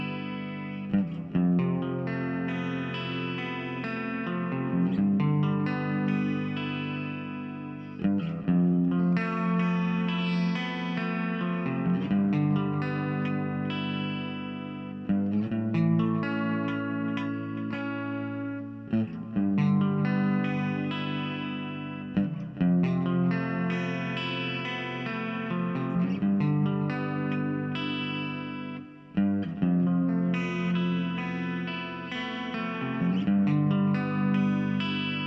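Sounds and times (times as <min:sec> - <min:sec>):
V63M guitar pad: 0:00.0 - 0:35.2.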